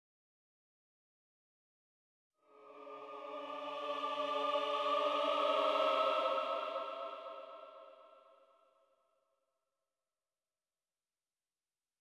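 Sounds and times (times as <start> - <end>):
choir singing: 2.4 - 8.6.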